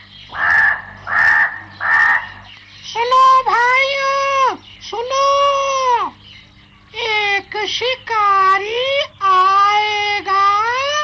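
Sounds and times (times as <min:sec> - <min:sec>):
faint low hum: 0:00.0 - 0:11.0
crow cawing in a forest: 0:00.3 - 0:02.6.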